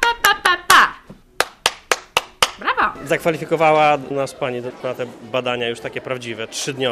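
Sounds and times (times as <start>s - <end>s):
hand clapping during a child's music aptitude test: 0.0s - 2.6s
speech: 3.0s - 6.9s.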